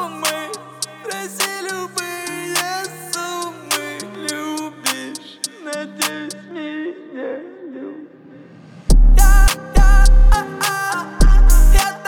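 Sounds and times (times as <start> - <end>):
37, 39 and 41 Hz low bass tone: 8.9 - 10.4, 11.2 - 11.8.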